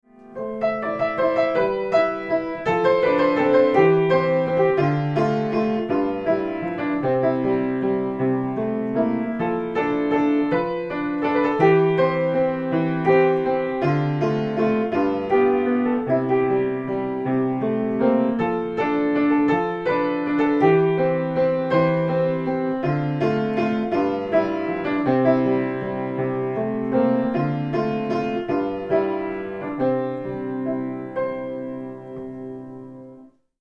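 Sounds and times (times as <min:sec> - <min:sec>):
Irish waltz on piano: 0:00.0 - 0:33.5.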